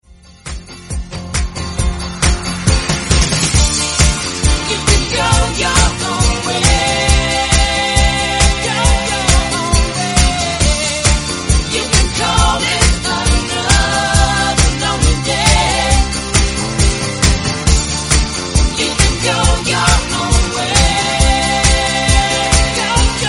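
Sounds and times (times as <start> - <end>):
drum loop in F: 0.5 - 23.2.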